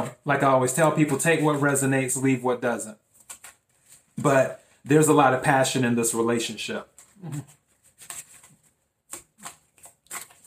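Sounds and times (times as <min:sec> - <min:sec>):
speech: 0:00.0 - 0:03.0, 0:04.2 - 0:07.6
deck of cards slipping while shuffled during a card reading: 0:03.1 - 0:04.4, 0:06.9 - 0:10.4.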